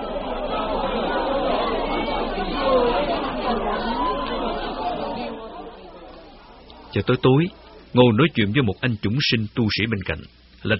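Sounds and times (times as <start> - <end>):
noisy crowd of many voices chattering: 0.0 - 9.6
speech: 6.9 - 10.7.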